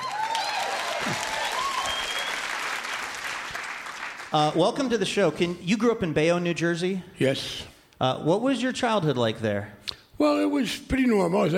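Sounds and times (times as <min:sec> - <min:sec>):
scattered cheers from a Portland audience: 0:00.0 - 0:02.4
Portland audience standing ovation clapping: 0:00.0 - 0:05.0
speech: 0:04.3 - 0:11.5.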